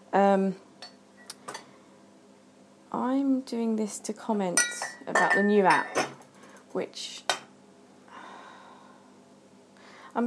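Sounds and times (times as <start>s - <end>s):
steady hum: 0.0s - 10.2s
speech: 0.1s - 0.7s, 2.9s - 6.1s, 6.8s - 7.3s
crockery and dishes clattering: 4.6s - 6.2s.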